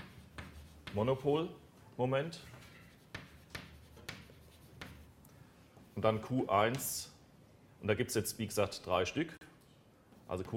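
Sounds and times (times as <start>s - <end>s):
writing tool tapping while writing an equation: 0.0s - 1.0s, 3.0s - 5.1s
speech: 0.9s - 2.6s, 6.0s - 7.1s, 7.8s - 9.4s, 10.3s - 10.5s.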